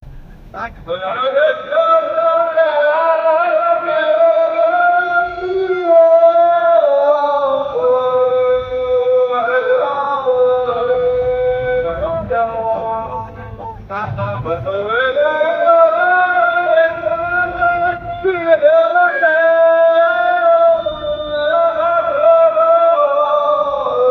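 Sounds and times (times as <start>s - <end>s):
Islamic call to prayer adhan: 0.6s - 24.0s.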